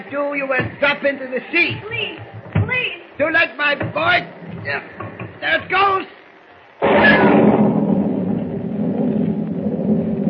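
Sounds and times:
speech: 0.0s - 2.3s, 3.2s - 6.2s
thunder crashing in a storm: 6.8s - 10.2s.

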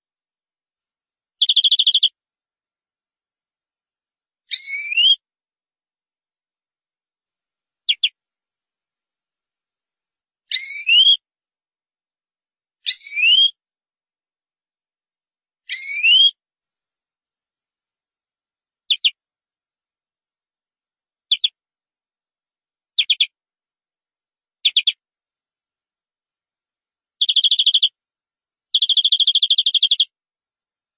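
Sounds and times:
canary singing: 1.4s - 2.1s, 4.5s - 5.2s, 7.9s - 8.1s, 10.5s - 11.2s, 12.9s - 13.6s, 15.7s - 16.4s, 18.9s - 19.2s, 21.3s - 21.6s, 23.0s - 23.3s, 24.6s - 25.0s, 27.2s - 27.9s, 28.7s - 30.1s.

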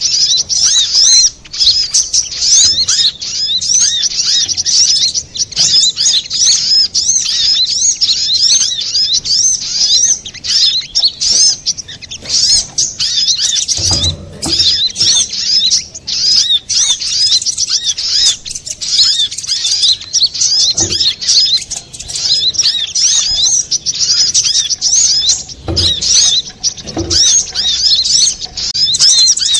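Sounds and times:
little spiderhunter song of high chattering notes: 0.0s - 29.5s
low knocking sounds: 12.2s - 15.8s, 20.7s - 21.5s, 25.1s - 29.3s.

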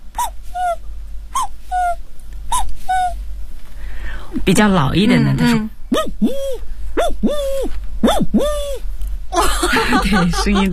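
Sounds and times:
jaw harp imitating a young cuckoo: 0.2s - 3.2s, 5.9s - 8.9s
speech: 4.4s - 10.7s
laughter: 9.4s - 10.7s.

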